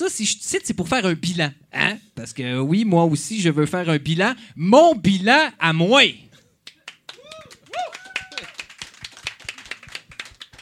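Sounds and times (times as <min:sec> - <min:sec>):
speech: 0:00.0 - 0:06.2
audience applause: 0:06.9 - 0:10.6
whoops or whistles: 0:07.2 - 0:08.6.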